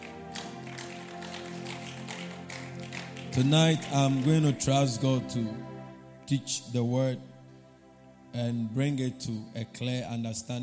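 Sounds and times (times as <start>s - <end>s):
audience clapping: 0.0s - 5.0s
speech: 3.4s - 5.7s, 6.3s - 7.3s, 8.4s - 10.6s.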